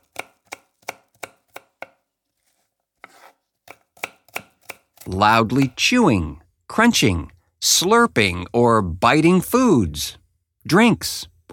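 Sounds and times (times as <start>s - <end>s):
knife chopping food on a board: 0.0s - 2.0s, 3.0s - 5.8s
speech: 5.1s - 11.5s.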